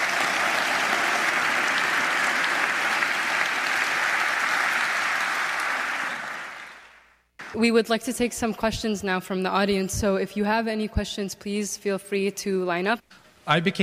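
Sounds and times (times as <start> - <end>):
audience applause: 0.0 - 7.6
speech: 7.5 - 13.8.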